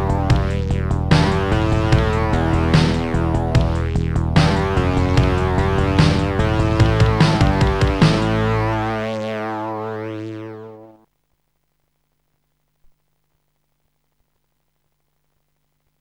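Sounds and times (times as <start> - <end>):
music beat: 0.0 - 9.0.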